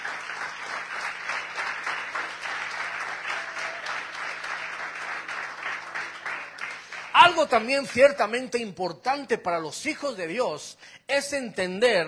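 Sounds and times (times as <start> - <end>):
audience applause: 0.0 - 8.0
speech: 7.3 - 12.0.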